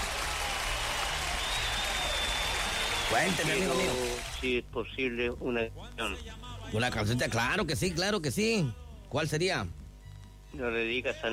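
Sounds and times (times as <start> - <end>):
applause: 0.0 - 4.5
speech: 3.1 - 9.8, 10.5 - 11.3.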